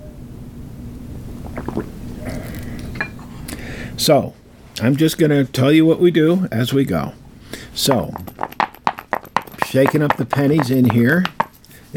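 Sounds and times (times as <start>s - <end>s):
sipping tea from a cup: 1.4s - 3.6s
speech: 4.0s - 7.2s, 7.8s - 8.4s, 9.7s - 11.9s.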